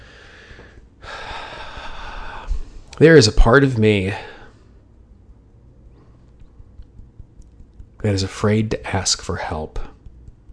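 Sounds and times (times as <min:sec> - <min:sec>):
deep breath during a hand-tapping exercise: 0:00.0 - 0:02.9
speech: 0:03.0 - 0:04.3, 0:08.0 - 0:09.9.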